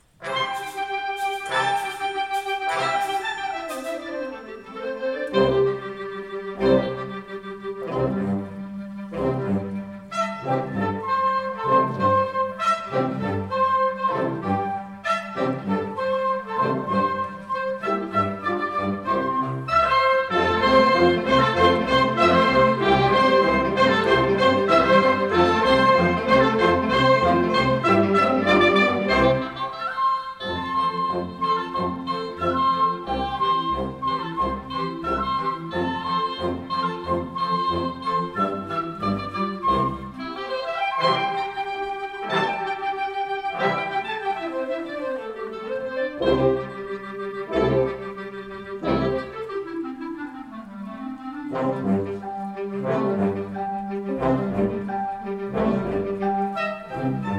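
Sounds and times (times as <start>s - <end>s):
folk suite: 0.0s - 57.3s.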